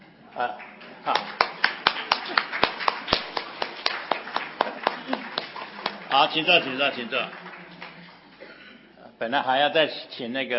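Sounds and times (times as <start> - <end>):
speech: 0.4 - 1.3, 6.2 - 7.5, 9.2 - 10.5
congregation clapping for mothers at a Mother's Day church service: 0.4 - 8.4.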